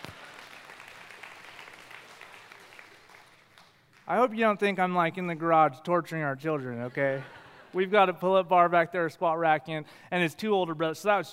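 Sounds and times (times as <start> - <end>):
people clapping for a one-year-old toddler: 0.0 - 5.7
speech: 4.1 - 11.3.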